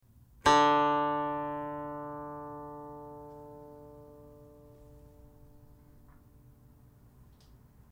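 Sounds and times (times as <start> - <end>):
guqin: 0.4 - 6.3.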